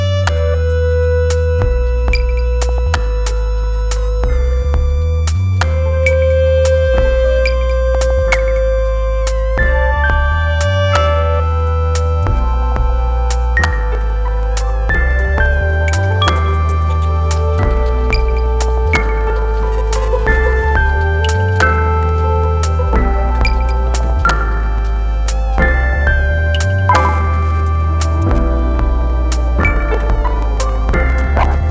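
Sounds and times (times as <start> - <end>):
ambulance siren: 0.0 - 31.6.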